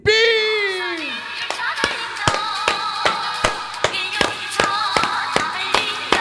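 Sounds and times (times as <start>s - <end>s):
wavering voices cheering or chanting: 0.0s - 6.1s
steady evenly spaced handclaps: 1.2s - 6.1s.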